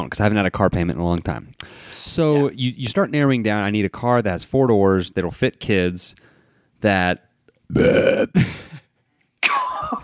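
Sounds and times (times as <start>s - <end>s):
speech: 0.0s - 8.6s
burp after drinking protein shake: 7.7s - 8.7s.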